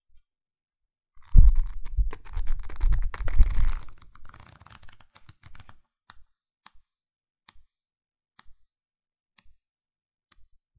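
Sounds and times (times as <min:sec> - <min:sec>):
pages of a book flipping fast and slow: 0:01.2 - 0:05.8.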